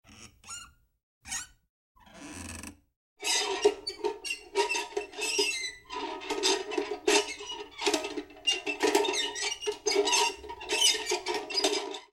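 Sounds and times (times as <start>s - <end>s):
metal screeching: 3.2s - 12.1s.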